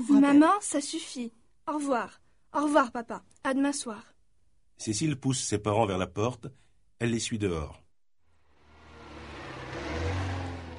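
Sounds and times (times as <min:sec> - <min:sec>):
speech: 0:00.0 - 0:04.1, 0:04.8 - 0:07.8
taxi engine starting and pulling away: 0:08.4 - 0:10.7.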